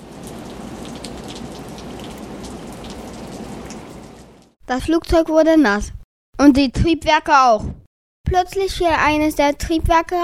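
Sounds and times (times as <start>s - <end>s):
rain falling: 0.0s - 4.6s
speech: 4.7s - 10.2s.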